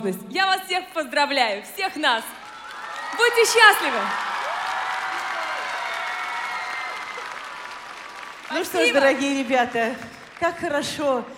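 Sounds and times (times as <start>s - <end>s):
speech: 0.0s - 2.4s, 3.1s - 4.4s, 8.5s - 11.3s
audience applause at an international charity children's festival: 2.4s - 11.0s.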